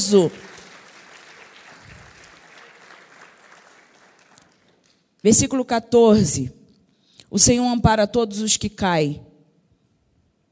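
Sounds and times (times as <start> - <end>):
audience at a Methodist cathedral service applauding: 0.0 - 5.1
speech: 0.1 - 0.5, 5.2 - 6.6, 7.3 - 9.3.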